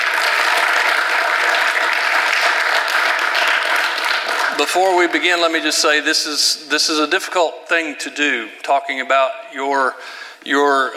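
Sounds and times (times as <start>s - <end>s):
audience applause: 0.0s - 5.2s
speech: 4.6s - 10.9s.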